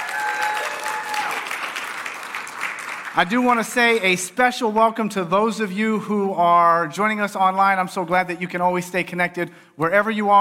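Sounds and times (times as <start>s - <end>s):
audience applause: 0.0s - 3.7s
speech: 3.2s - 10.3s.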